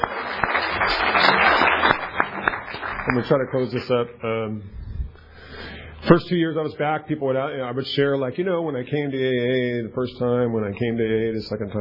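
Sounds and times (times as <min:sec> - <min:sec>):
audience clapping at an Alcoholics Anonymous meeting: 0:00.0 - 0:03.9
speech: 0:03.1 - 0:04.8, 0:06.0 - 0:11.8.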